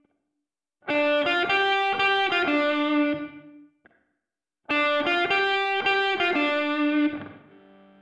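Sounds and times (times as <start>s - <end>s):
isolated guitar melody live recording: 0.9s - 3.6s, 4.7s - 7.9s.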